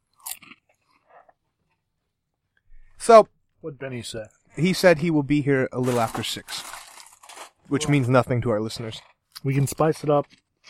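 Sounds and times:
crunching on potato chips: 0.0s - 1.1s, 5.8s - 7.6s, 9.8s - 10.6s
speech: 3.1s - 6.8s, 7.7s - 10.4s.

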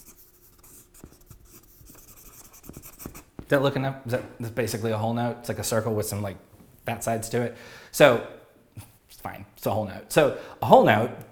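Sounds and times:
pen or pencil scratching while drawing a whole note by hand: 0.0s - 3.5s
speech: 3.5s - 8.4s, 9.6s - 11.2s.

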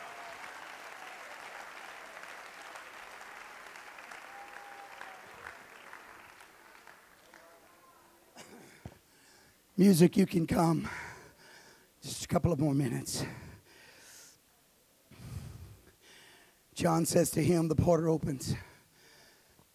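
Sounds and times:
audience clapping hands in praise: 0.0s - 8.2s
cheers: 0.0s - 8.2s
speech: 9.8s - 11.0s, 12.4s - 13.4s, 16.8s - 18.7s.

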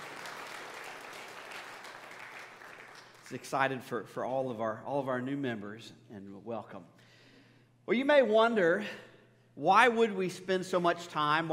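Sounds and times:
audience applause: 0.0s - 3.3s
speech: 3.3s - 7.0s, 7.9s - 11.5s.

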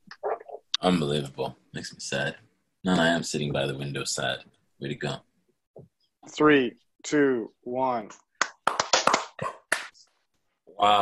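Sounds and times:
speech: 0.8s - 5.3s, 6.3s - 8.3s, 10.8s - 10.9s
people clapping: 8.4s - 10.0s.

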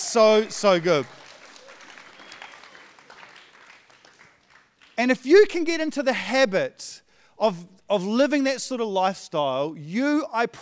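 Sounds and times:
audience clapping: 0.0s - 5.2s
speech: 0.1s - 1.2s, 5.0s - 10.6s.

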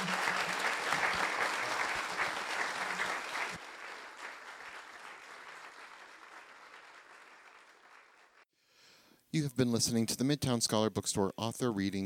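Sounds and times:
round of applause for Professor Sean Carroll: 0.0s - 8.4s
speech: 9.4s - 12.0s.

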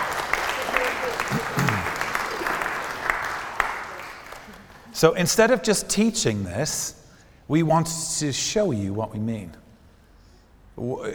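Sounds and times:
round of applause: 0.0s - 4.9s
speech: 5.0s - 9.6s, 10.8s - 11.1s.

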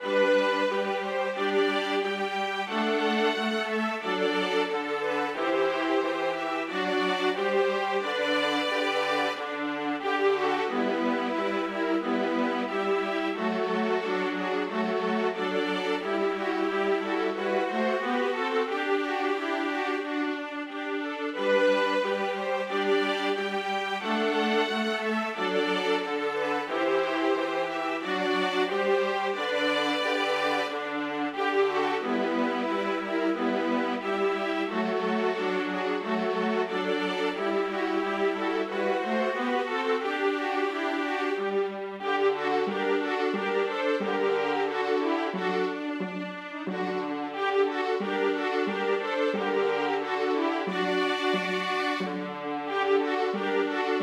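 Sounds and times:
chamber orchestra playing: 0.0s - 54.0s.

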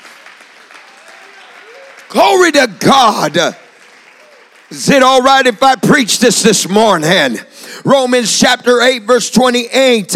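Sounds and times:
audience clapping: 0.0s - 6.3s
speech: 2.1s - 3.6s, 4.7s - 10.1s.

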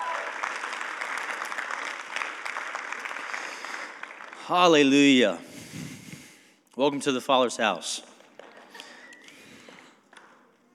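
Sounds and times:
church congregation applauding a speaker at a service: 0.0s - 5.4s, 8.0s - 10.4s
speech: 4.5s - 5.8s, 6.8s - 8.1s.

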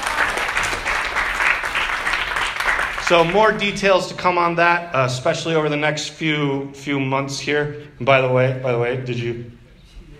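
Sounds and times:
round of applause: 0.0s - 3.6s
speech: 3.1s - 9.6s.

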